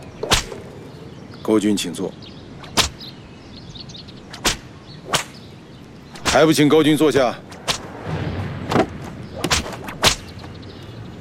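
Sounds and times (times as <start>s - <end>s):
leather whip lashing into flesh: 0.2s - 0.6s, 4.3s - 5.4s, 7.6s - 7.9s, 9.4s - 10.4s
speech: 1.5s - 2.4s, 6.4s - 7.5s.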